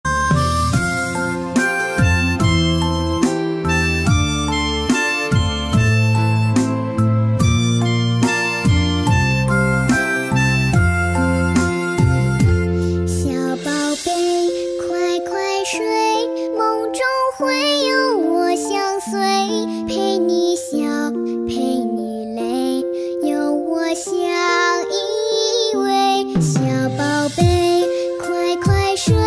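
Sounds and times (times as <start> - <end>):
Chinese lullaby: 0.1 - 29.2.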